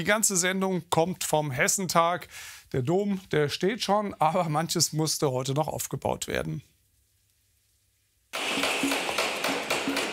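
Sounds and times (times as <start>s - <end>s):
speech: 0.0s - 6.7s
hammering with a short metallic ring: 8.4s - 10.1s.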